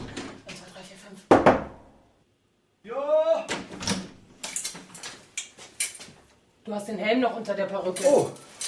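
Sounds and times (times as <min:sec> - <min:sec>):
soft knocking on a door: 0:01.3 - 0:01.9
speech: 0:06.7 - 0:08.5.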